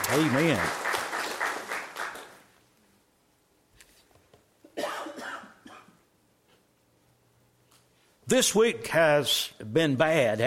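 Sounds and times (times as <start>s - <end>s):
round of applause: 0.0s - 2.5s
speech: 0.1s - 0.9s, 8.3s - 10.4s.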